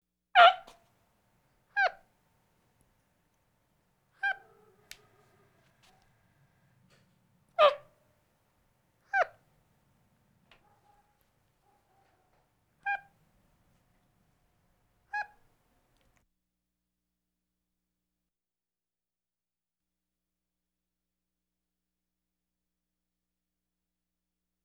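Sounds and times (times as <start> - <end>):
capuchin monkey chirping calls: 0.4 - 0.7, 1.8 - 2.0, 4.2 - 4.9, 7.6 - 7.8, 9.1 - 9.4, 12.8 - 13.1, 15.1 - 15.4.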